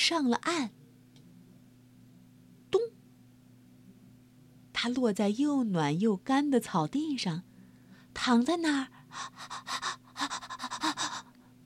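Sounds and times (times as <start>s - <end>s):
speech: 0.1s - 0.8s, 4.8s - 7.5s, 8.2s - 11.0s
gasping out-of-breath panting: 9.0s - 11.4s.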